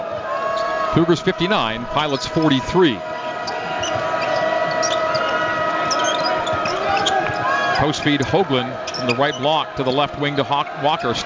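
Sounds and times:
constant crowd roar at a college basketball game: 0.0 - 11.2
speech: 1.0 - 3.6, 7.8 - 11.2
basketball dribbled slowly on the court at Provo, Cougars versus Pilots: 3.4 - 7.6.

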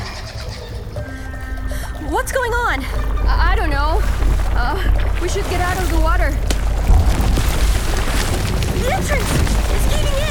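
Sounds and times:
speech: 2.1 - 6.6, 8.8 - 10.2
cave entrance collapsing in a deep rumble: 2.5 - 10.2
crashing debris: 4.3 - 10.2.

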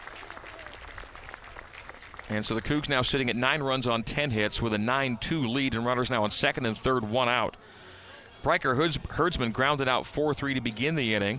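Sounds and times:
crowd applauding injured player leaving field: 0.0 - 3.0
speech: 2.3 - 7.8, 8.4 - 11.3.

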